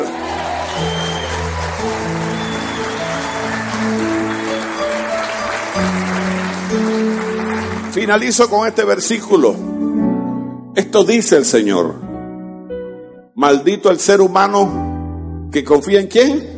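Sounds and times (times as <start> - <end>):
audience applause: 0.0 - 9.2
speech: 8.0 - 9.8, 10.9 - 12.0, 13.4 - 14.9, 15.5 - 16.5.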